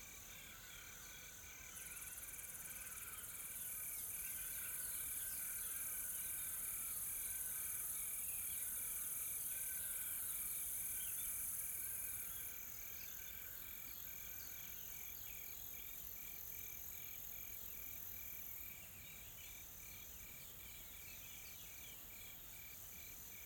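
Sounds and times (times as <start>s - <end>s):
insects droning: 0.0s - 23.4s.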